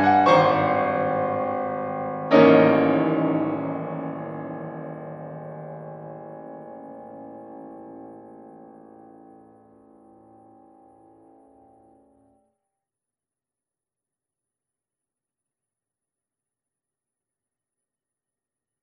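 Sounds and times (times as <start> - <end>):
piano accompaniment of a euphonium sonata: 0.0 - 12.0.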